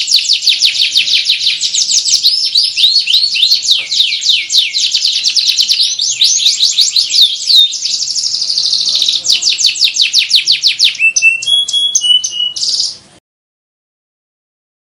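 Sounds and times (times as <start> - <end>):
Atlantic canary singing: 0.0 - 13.2.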